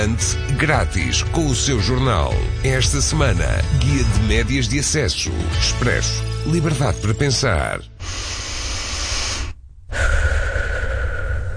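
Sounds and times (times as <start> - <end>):
speech: 0.0 - 8.4
person taking a deep breath of fresh air in nature: 8.0 - 11.5.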